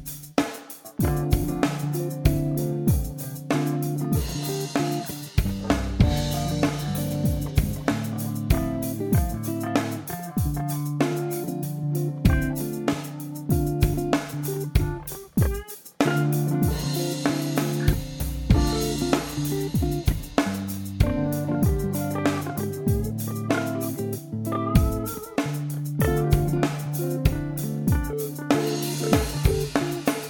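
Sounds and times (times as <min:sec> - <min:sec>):
bluesy groove in five four: 0:00.0 - 0:30.2.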